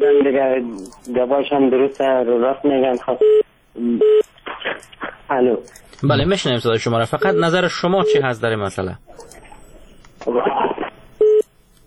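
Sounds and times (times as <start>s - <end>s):
speech: 0.3s - 9.4s, 10.2s - 10.7s
telephone busy tone: 11.2s - 11.4s.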